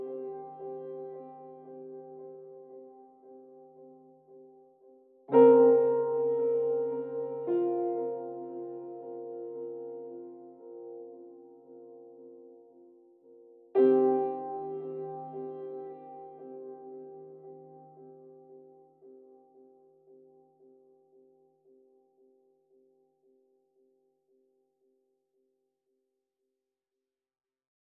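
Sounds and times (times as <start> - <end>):
piano layer: 0.0 - 22.3.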